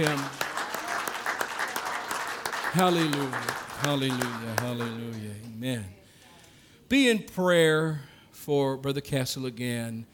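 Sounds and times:
speech: 0.0 - 0.4, 2.7 - 6.0, 6.9 - 10.1
people clapping hands: 0.0 - 5.6.

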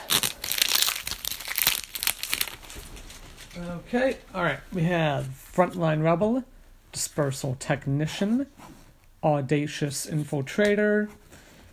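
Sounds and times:
trading card booster pack wrapper crinkling and tearing: 0.0 - 3.6
speech: 3.6 - 11.2.

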